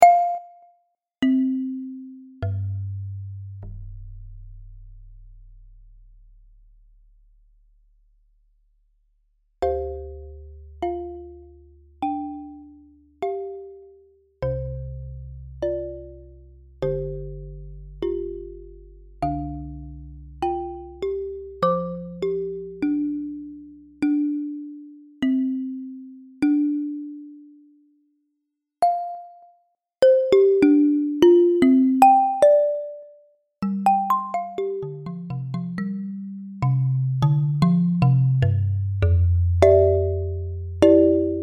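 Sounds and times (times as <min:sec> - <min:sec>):
marimba: 0:00.0 - 0:03.4, 0:09.6 - 0:27.7, 0:28.8 - 0:41.4.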